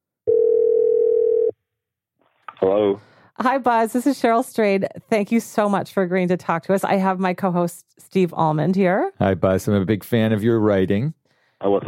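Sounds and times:
telephone call ringing tone: 0.3 - 1.5
speech: 2.7 - 11.8.

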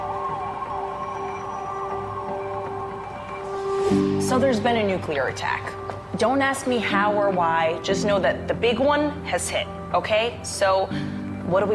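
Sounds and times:
tornado drill warning siren: 0.0 - 4.9
speech: 3.9 - 11.7.

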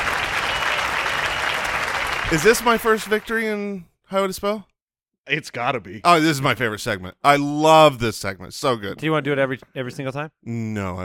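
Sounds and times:
crowd applause: 0.0 - 3.4
speech: 2.3 - 4.7, 5.3 - 11.0.

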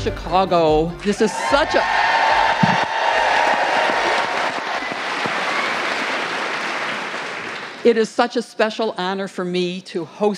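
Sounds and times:
speech: 0.0 - 2.9, 7.8 - 10.3
live audience cheering and applauding: 1.2 - 7.8.

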